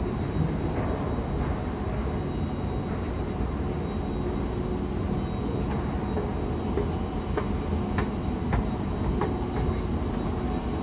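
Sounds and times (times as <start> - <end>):
NYC public transportation mishmash: 0.0 - 10.8.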